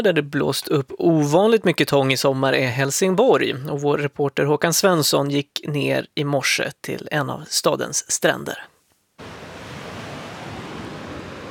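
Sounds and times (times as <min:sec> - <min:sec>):
speech: 0:00.0 - 0:08.7
waves washing up on the Fria Bad beach in Helsingborg: 0:09.2 - 0:11.4.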